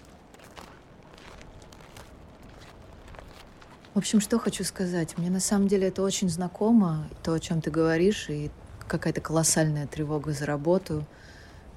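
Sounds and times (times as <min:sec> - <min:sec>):
snow crunching underfoot in forest: 0:00.0 - 0:05.8
speech: 0:04.0 - 0:11.3.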